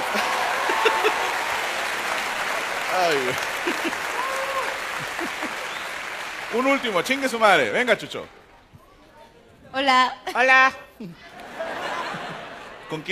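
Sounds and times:
laughter: 0.0s - 1.6s, 3.0s - 5.9s, 11.1s - 13.1s
audience applause: 0.0s - 8.1s
speech: 3.0s - 4.1s, 6.5s - 8.4s, 9.7s - 11.3s, 12.9s - 13.1s.

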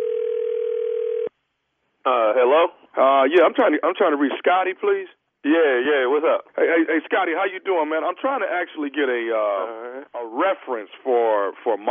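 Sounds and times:
telephone dial tone when placing call: 0.0s - 1.3s
speech: 2.0s - 11.8s.

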